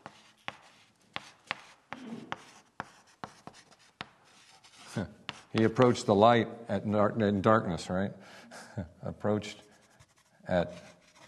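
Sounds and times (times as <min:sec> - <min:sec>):
pen writing notes by hand: 0:00.0 - 0:05.8, 0:09.7 - 0:11.2
speech: 0:05.0 - 0:09.6, 0:10.5 - 0:10.9.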